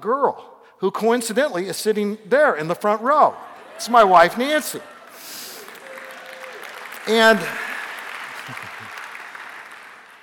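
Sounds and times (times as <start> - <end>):
speech: 0.0 - 5.4, 7.1 - 7.7
audience clapping: 4.8 - 10.2.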